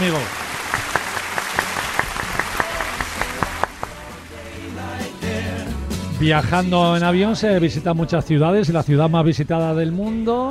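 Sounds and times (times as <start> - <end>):
speech: 0.0 - 0.4, 6.2 - 10.5
applause: 0.0 - 4.6.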